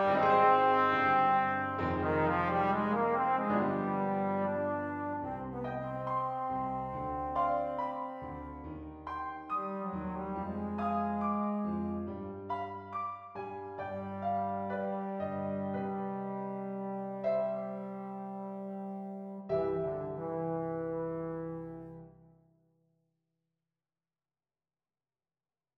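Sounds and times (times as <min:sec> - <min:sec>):
trombone: 0:00.0 - 0:08.6, 0:09.5 - 0:12.2, 0:13.9 - 0:22.1.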